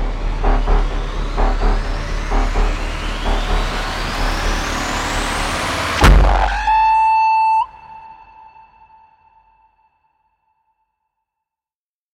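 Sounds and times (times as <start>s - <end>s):
cinematic sound effects: 0.0s - 9.4s.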